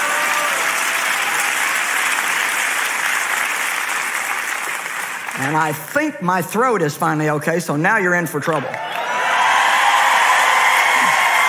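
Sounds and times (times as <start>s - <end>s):
audience applause: 0.0s - 6.1s, 8.6s - 11.4s
speech: 5.4s - 9.0s.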